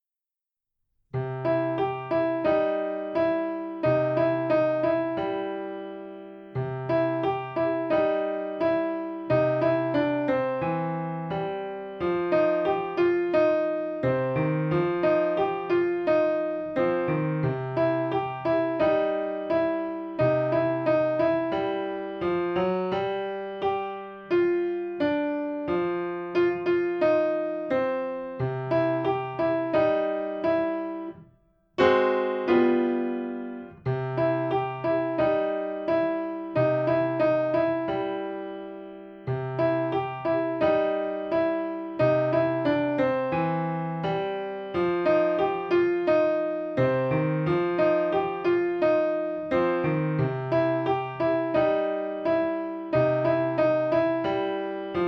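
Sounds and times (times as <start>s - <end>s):
blues piano: 1.2s - 55.0s.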